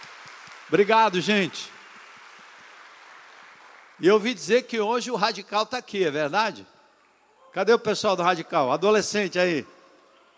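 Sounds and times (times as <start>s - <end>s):
audience applauding: 0.0s - 4.8s
speech: 0.7s - 1.8s, 4.0s - 6.7s, 7.6s - 9.8s.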